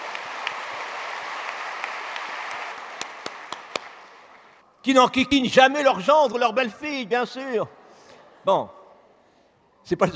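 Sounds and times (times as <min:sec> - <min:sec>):
audience applause: 0:00.0 - 0:04.6
speech: 0:04.8 - 0:07.8, 0:08.4 - 0:08.8, 0:09.8 - 0:10.1.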